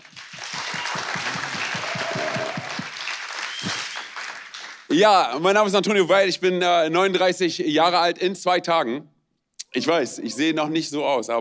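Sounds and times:
audience applause: 0.0s - 4.9s
speech: 4.9s - 9.1s, 9.7s - 11.3s.

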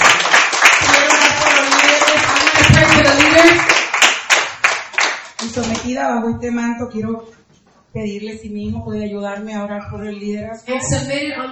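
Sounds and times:
church congregation applauding for the Lord: 0.0s - 5.9s
speech: 5.6s - 11.4s.

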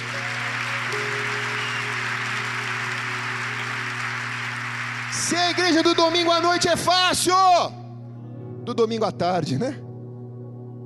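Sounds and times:
audience applause: 0.0s - 7.1s
speech: 5.3s - 7.8s, 8.7s - 9.8s.

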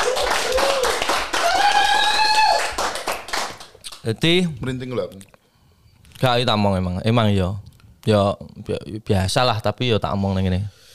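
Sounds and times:
hand clapping: 0.0s - 4.0s
speech: 4.0s - 5.4s, 6.2s - 10.9s.

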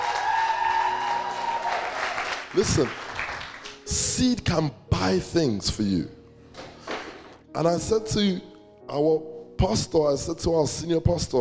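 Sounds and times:
audience round of applause: 0.0s - 3.8s
speech: 2.5s - 3.1s, 3.9s - 6.2s, 7.6s - 11.4s.

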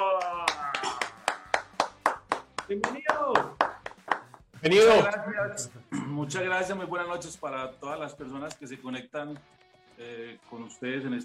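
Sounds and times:
applause for guest: 0.0s - 4.5s
speech: 2.7s - 3.6s, 4.6s - 11.2s.

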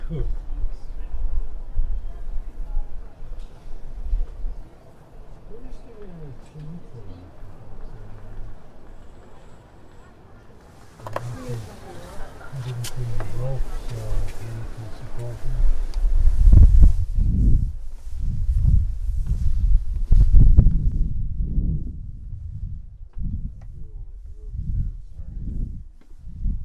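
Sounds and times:
crowd murmur in Prague: 0.0s - 16.1s
faint voices: 0.0s - 16.1s
heavy irregular low thumps and rumbles: 15.4s - 26.6s.

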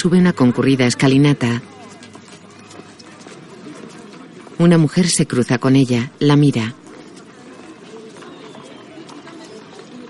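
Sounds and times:
speech: 0.0s - 1.8s, 4.6s - 6.8s
horse hooves clip-clopping as a horse-drawn carriage stops: 1.5s - 5.4s, 6.6s - 10.0s.

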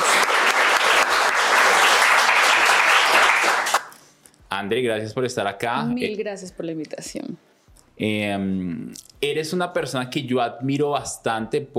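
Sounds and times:
audience applause: 0.0s - 3.9s
speech: 4.5s - 11.7s.

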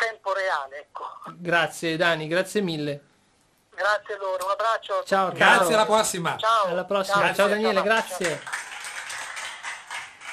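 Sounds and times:
speech: 0.6s - 3.1s, 3.8s - 8.6s
audience applause: 7.9s - 10.3s.

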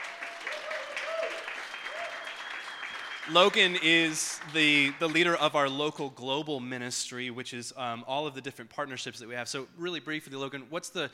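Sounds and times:
audience applause: 0.0s - 5.4s
speech: 3.3s - 11.1s.

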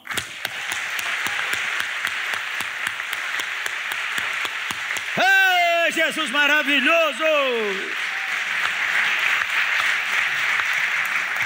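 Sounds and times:
audience applauding: 0.0s - 11.4s
speech: 6.0s - 8.0s.

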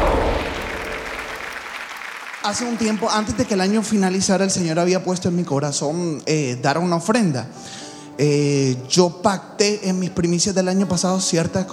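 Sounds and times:
crowd clapping: 0.0s - 4.0s
speech: 2.4s - 11.7s.

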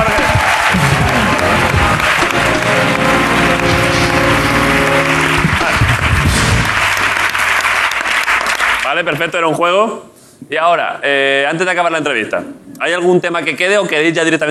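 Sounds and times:
applause: 0.0s - 9.2s
speech: 9.0s - 14.4s.

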